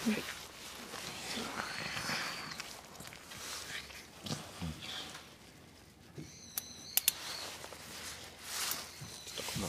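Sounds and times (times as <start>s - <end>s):
speech: 0.0s - 0.4s
gentle handling noises: 0.0s - 9.6s
rustling of continuous suturing during cow surgery: 0.0s - 9.6s.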